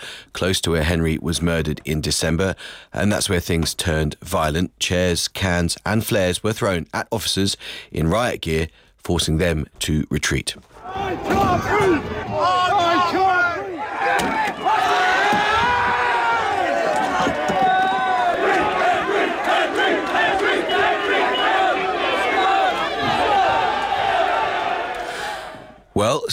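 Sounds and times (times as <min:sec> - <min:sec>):
speech: 0:00.4 - 0:13.4, 0:26.0 - 0:26.3
large protest crowd shouting and chanting: 0:10.7 - 0:25.8.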